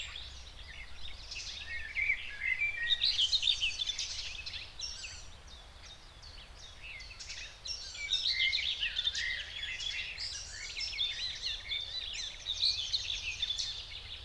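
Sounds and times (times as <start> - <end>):
common whitethroat singing in the Spreewald: 0.0 - 14.2.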